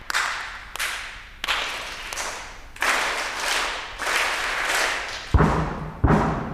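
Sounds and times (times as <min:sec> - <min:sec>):
crowd clapping: 0:00.0 - 0:05.4.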